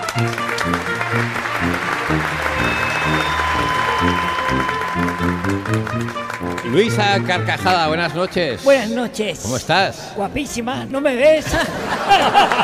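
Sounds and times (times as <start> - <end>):
upbeat musical backing with a steady rhythmic bass line: 0.0 - 7.8
audience applause: 0.0 - 8.0
speech: 0.2 - 12.6
laughter: 11.4 - 12.6.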